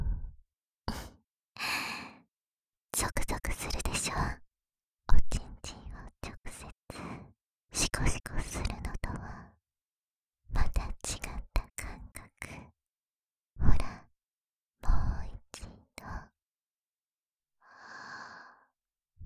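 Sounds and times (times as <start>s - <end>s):
person whispering: 2.9s - 4.4s, 5.1s - 9.5s, 10.5s - 12.7s, 13.6s - 14.1s, 14.9s - 16.3s.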